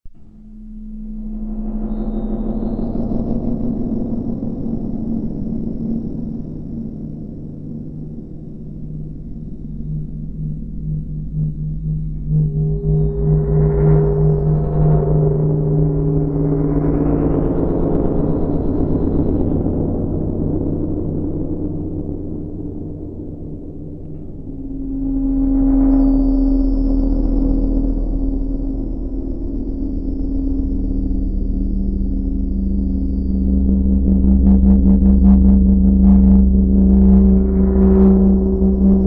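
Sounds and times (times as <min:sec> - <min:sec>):
ambient song: 0:00.1 - 0:39.0.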